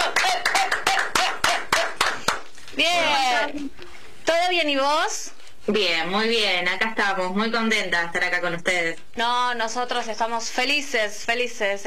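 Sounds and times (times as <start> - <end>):
applause for a guest: 0.0 - 2.6
speech: 2.8 - 11.8.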